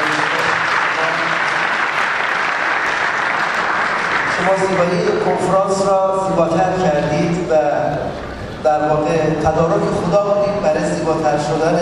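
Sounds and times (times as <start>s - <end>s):
conference audience applause: 0.0s - 5.4s
speech: 4.5s - 11.7s.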